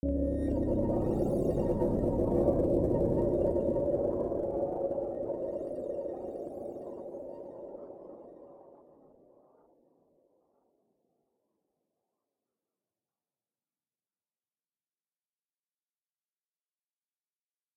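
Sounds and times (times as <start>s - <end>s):
synth stem: 0.0s - 5.6s.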